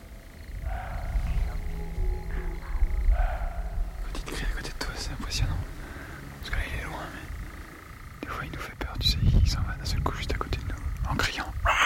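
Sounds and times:
roe deer barking: 0.0 - 8.2
low rumble: 0.0 - 11.8.

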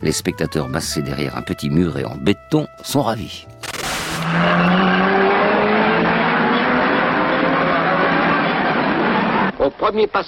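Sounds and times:
speech: 0.0 - 3.6, 4.3 - 4.9, 9.8 - 10.2
racing car engines roaring through a narrow bottleneck: 3.8 - 9.6.

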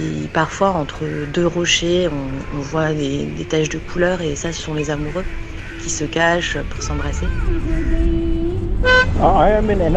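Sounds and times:
engine and traffic rumble: 0.0 - 9.9
speech: 0.3 - 9.9
car horn honk: 8.7 - 9.7.

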